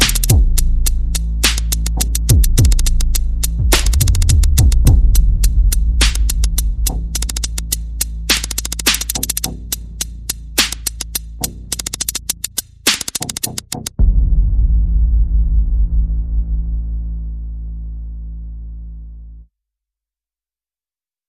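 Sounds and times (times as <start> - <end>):
percussion: 0.0 - 16.6
bass: 0.0 - 19.5.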